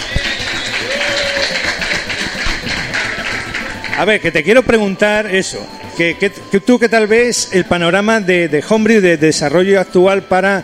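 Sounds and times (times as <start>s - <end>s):
crowd applauding: 0.0s - 6.1s
speech: 4.0s - 10.6s.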